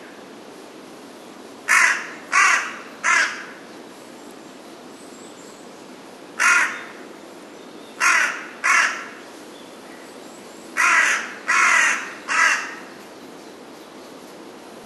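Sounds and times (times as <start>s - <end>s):
carrion crow cawing: 1.7s - 3.6s, 6.4s - 7.0s, 8.0s - 9.2s, 10.8s - 13.0s.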